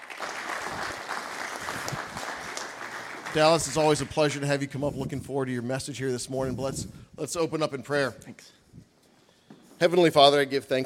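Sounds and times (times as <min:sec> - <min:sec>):
church congregation applauding during a morning service: 0:00.0 - 0:04.6
speech: 0:03.3 - 0:08.6, 0:09.8 - 0:10.8.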